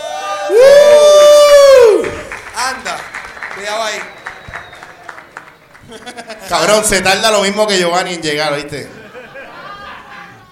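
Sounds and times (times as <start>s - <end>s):
audience applause and cheering: 0.0s - 6.7s
speech: 3.7s - 4.2s, 6.2s - 9.0s
laughter: 5.8s - 6.9s, 8.7s - 10.5s.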